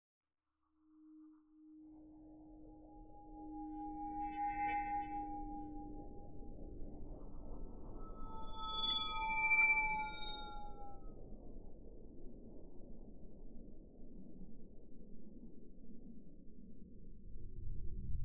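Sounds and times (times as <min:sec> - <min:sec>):
long swirling sound effect: 0:01.7 - 0:11.1.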